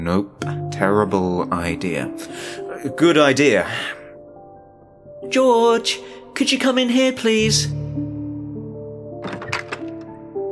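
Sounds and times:
speech: 0:00.0 - 0:04.0, 0:05.2 - 0:07.8
office door creaking open on its hinges: 0:09.2 - 0:10.2
wooden knocks and rattles: 0:09.2 - 0:10.2.

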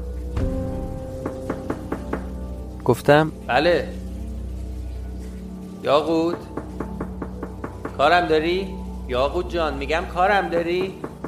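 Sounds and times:
knocking on a door: 0:01.2 - 0:02.4, 0:06.3 - 0:08.2, 0:10.6 - 0:11.2
speech: 0:02.9 - 0:04.0, 0:05.8 - 0:06.6, 0:08.0 - 0:11.1.

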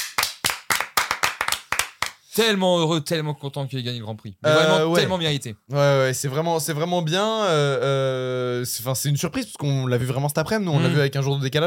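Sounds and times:
audience clapping: 0:00.0 - 0:02.2
speech: 0:02.4 - 0:11.6.

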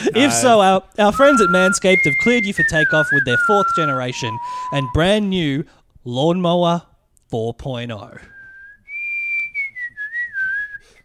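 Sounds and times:
speech: 0:00.1 - 0:08.3
person whistling eerie sci-fi space tune: 0:01.2 - 0:05.3, 0:08.3 - 0:11.0.

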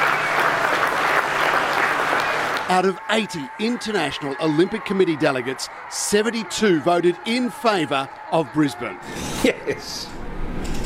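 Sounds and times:
crowd on the banks of the Brisbane River clapping and cheering: 0:00.0 - 0:09.0
speech: 0:02.7 - 0:10.2.

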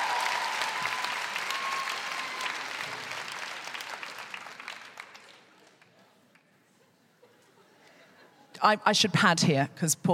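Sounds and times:
audience applause: 0:00.0 - 0:06.4
speech: 0:08.6 - 0:10.1.

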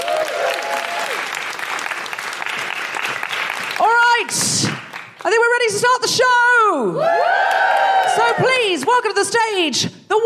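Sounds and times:
audience applauding: 0:00.0 - 0:05.3, 0:07.0 - 0:08.6
speech: 0:04.3 - 0:07.3, 0:08.4 - 0:10.2.

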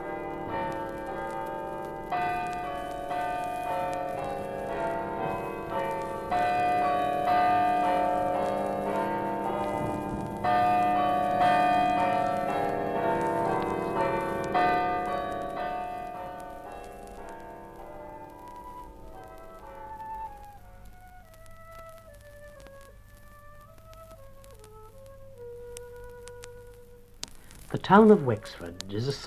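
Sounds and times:
chimes of the Church of the Immaculate Conception, joy bells of Wexford: 0:00.0 - 0:19.9
speech: 0:27.8 - 0:29.2.

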